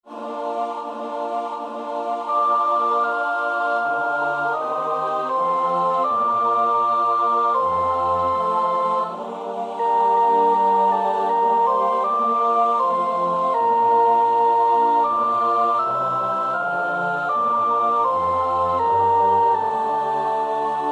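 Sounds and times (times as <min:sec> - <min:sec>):
soprano singing: 0:00.1 - 0:20.8.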